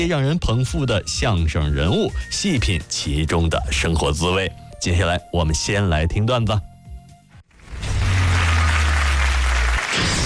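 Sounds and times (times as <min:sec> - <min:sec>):
speech: 0:00.0 - 0:06.7
audience applause: 0:07.8 - 0:10.2.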